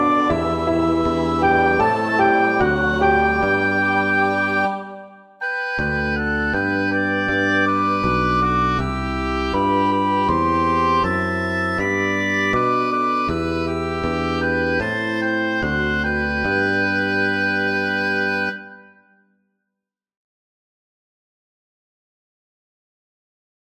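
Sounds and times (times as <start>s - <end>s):
bass in G major: 0.0s - 4.8s, 5.4s - 18.7s
singers in G major: 0.0s - 5.4s
organ in G major: 0.0s - 18.9s
piano in G major: 0.0s - 18.9s.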